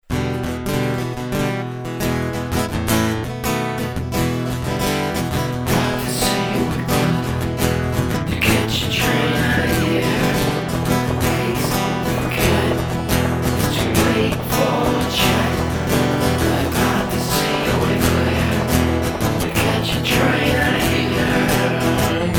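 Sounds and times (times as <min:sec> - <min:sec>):
blues music: 0:00.0 - 0:22.3.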